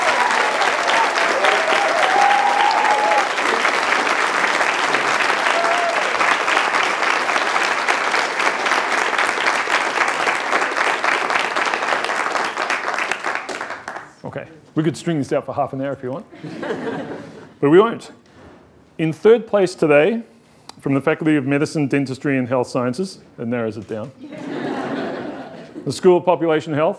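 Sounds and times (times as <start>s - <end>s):
audience applauding the contestants: 0.0s - 14.2s
speech: 14.8s - 18.2s, 19.0s - 24.3s, 25.8s - 26.9s
laughter: 16.3s - 17.6s, 24.2s - 25.9s.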